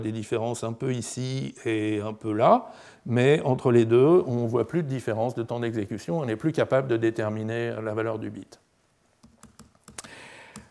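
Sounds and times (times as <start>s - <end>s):
speech: 0.0s - 8.6s
computer keyboard keys pressed during a presentation: 9.2s - 10.6s.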